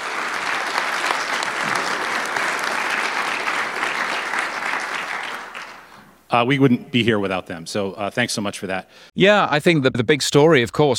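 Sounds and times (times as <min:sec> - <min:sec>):
audience applause: 0:00.0 - 0:06.0
speech: 0:06.3 - 0:10.9.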